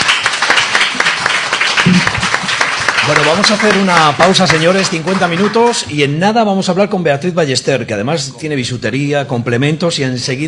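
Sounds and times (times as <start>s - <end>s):
small studio audience clapping on a morning show: 0.0s - 5.9s
speech: 1.9s - 2.2s, 3.0s - 10.4s.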